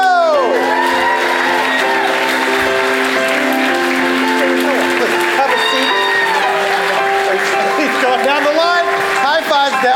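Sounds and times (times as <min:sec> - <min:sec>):
whoops and shouts: 0:00.0 - 0:02.2, 0:05.5 - 0:06.6
audience clapping: 0:00.0 - 0:09.9.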